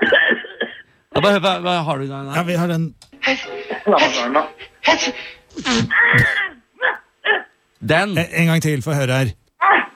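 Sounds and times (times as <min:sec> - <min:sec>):
speech: 0:01.2 - 0:06.4, 0:07.8 - 0:09.8
person imitating a sneeze: 0:05.5 - 0:07.6.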